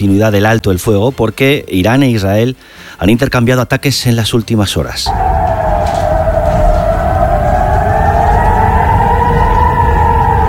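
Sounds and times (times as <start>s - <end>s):
speech: 0.0s - 5.3s
air raid sirens in Israel wailing: 5.0s - 10.4s
low rumble: 5.1s - 10.4s.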